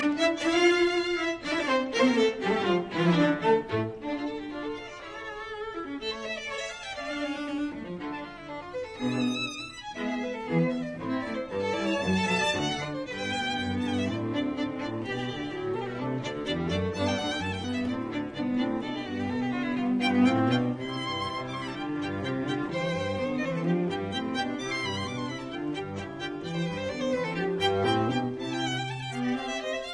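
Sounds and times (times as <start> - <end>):
string quartet playing an allegro in F major: 0.0 - 29.9.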